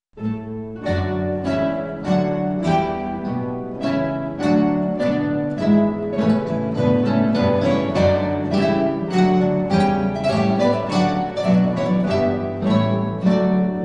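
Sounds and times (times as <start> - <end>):
minuet: 0.2 - 13.8.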